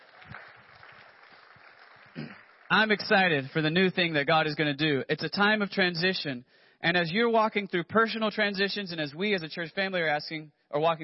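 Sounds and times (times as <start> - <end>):
audience clapping: 0.0 - 4.0
speech: 2.7 - 11.0.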